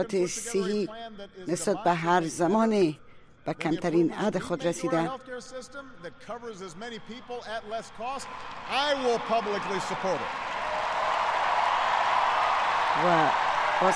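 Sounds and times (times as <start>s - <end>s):
speech: 0.0s - 10.6s, 13.0s - 13.9s
audience applause: 8.2s - 13.9s.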